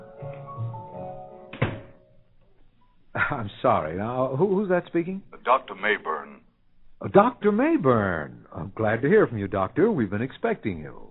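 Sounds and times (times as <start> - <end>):
door being shut: 1.5 - 2.1
speech: 3.3 - 6.3, 7.0 - 11.0.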